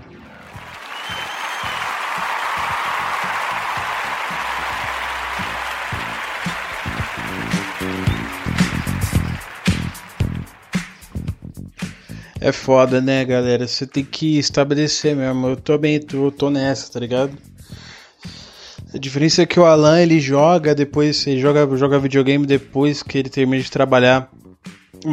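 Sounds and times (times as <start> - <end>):
played applause sound effect: 0.2 - 11.9
speech: 12.5 - 17.5, 19.0 - 24.4.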